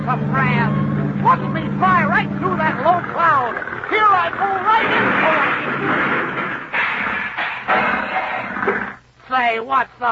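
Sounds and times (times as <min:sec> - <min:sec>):
speech: 0:00.1 - 0:06.4, 0:09.4 - 0:10.0
cartoon crash into a chimney: 0:03.9 - 0:09.0.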